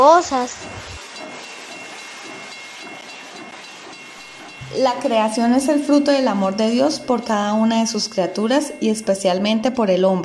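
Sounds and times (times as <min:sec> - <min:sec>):
steam train hissing: 0:00.0 - 0:10.0
speech: 0:00.1 - 0:01.0, 0:04.7 - 0:10.2.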